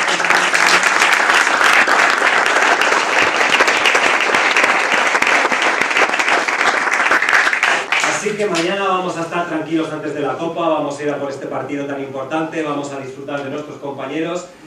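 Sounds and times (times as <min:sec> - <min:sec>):
audience applauding: 0:00.0 - 0:08.7
speech: 0:08.4 - 0:14.6.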